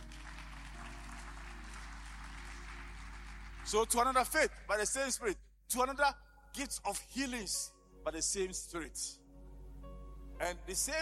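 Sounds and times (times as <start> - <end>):
crowd clapping: 0.0 - 4.4
speech: 3.7 - 9.2, 10.4 - 11.0.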